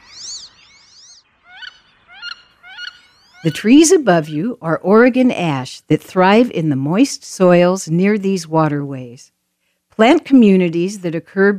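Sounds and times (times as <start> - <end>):
wood ducks whistling: 0.0 - 3.6
speech: 3.4 - 9.4, 10.0 - 11.5.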